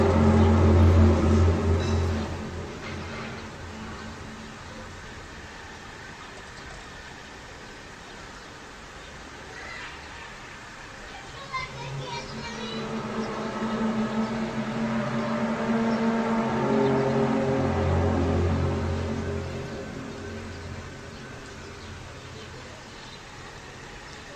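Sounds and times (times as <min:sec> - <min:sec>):
mysterious low droning hum recorded in Kiev: 0:00.0 - 0:05.9, 0:10.9 - 0:23.5.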